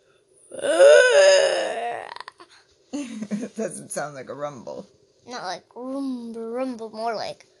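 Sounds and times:
speech: 0.5s - 1.1s, 3.6s - 7.5s
voice imitating a dragon roar: 0.5s - 2.4s.

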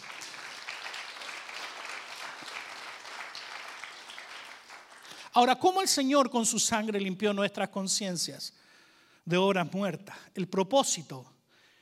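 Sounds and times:
audience applause: 0.0s - 5.2s
speech: 5.4s - 8.6s, 9.3s - 11.3s.

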